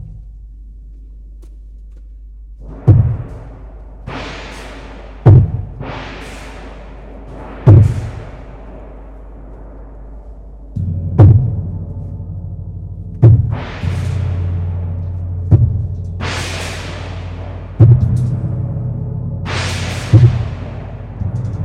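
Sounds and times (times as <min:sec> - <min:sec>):
percussion trio: 0:02.6 - 0:10.0, 0:13.2 - 0:18.5, 0:19.5 - 0:21.6.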